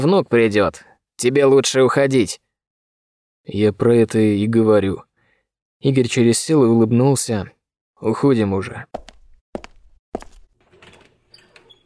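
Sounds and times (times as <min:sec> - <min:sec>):
speech: 0:00.0 - 0:02.4, 0:03.4 - 0:05.1, 0:05.8 - 0:09.0
heavy footsteps behind a door: 0:09.0 - 0:11.8
door leaf swinging open with a scratchy creak: 0:10.5 - 0:11.8.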